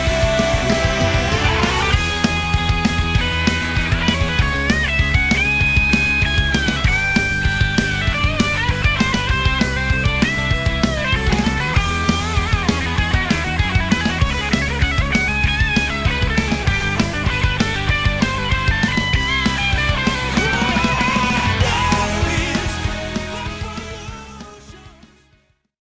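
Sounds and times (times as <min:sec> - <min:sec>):
guitar solo: 0:00.2 - 0:23.5.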